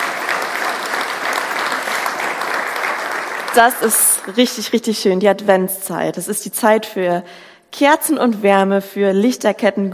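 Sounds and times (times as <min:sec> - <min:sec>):
audience applause: 0:00.0 - 0:04.6
speech: 0:03.6 - 0:09.9.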